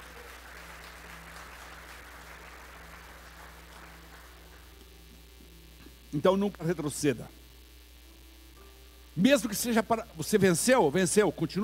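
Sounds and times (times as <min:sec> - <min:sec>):
audience applauding: 0:00.0 - 0:04.8
low electrical hum: 0:00.0 - 0:11.6
speech: 0:06.1 - 0:07.4, 0:09.2 - 0:11.6.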